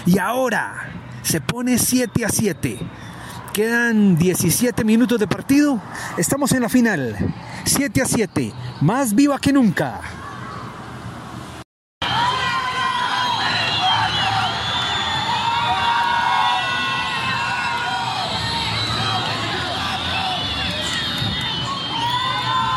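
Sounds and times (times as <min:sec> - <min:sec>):
speech: 0:00.0 - 0:10.2
high shouts and whoops: 0:12.0 - 0:22.7
packed stadium crowd cheering in the stands: 0:12.0 - 0:22.7.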